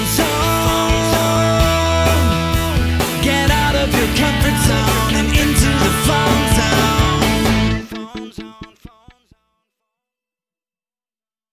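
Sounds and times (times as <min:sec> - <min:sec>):
telecommunication a cappella jingle: 0:00.0 - 0:09.2.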